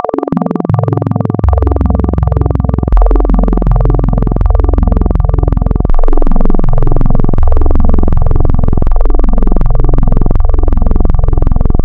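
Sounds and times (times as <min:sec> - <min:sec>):
additive wavetable synthesizer tone: 0:00.0 - 0:11.8.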